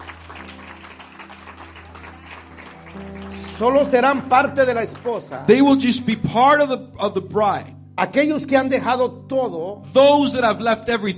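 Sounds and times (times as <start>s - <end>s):
audience applauding: 0.0s - 5.7s
speech: 3.0s - 11.1s.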